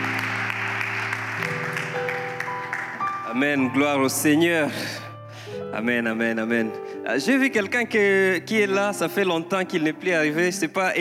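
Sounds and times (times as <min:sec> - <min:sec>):
church congregation clapping: 0:00.0 - 0:04.0
keyboard-like chords: 0:00.0 - 0:10.9
speech: 0:03.3 - 0:10.9.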